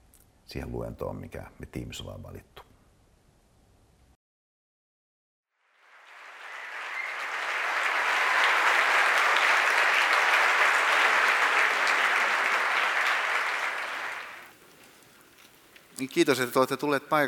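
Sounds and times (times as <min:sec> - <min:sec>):
speech: 0:00.5 - 0:02.6, 0:16.0 - 0:17.2
welcoming applause from a lecture audience: 0:05.8 - 0:14.6.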